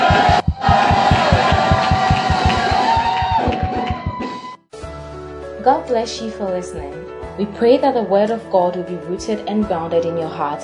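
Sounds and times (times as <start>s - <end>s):
audience shouting praise: 0.0s - 4.4s
rhythmic clapping: 0.0s - 4.4s
speech: 5.7s - 10.6s.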